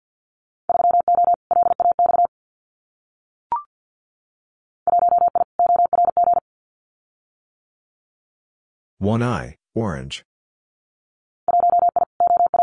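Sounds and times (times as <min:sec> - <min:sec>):
Morse code beeps at about 50 words per minute: 0:00.7 - 0:02.3, 0:04.9 - 0:06.4, 0:11.5 - 0:12.6
speech: 0:09.0 - 0:10.3.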